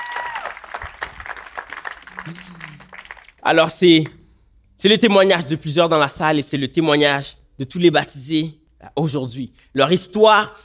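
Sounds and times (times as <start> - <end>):
audience applause: 0.0 - 3.4
speech: 2.2 - 4.2, 4.8 - 10.6.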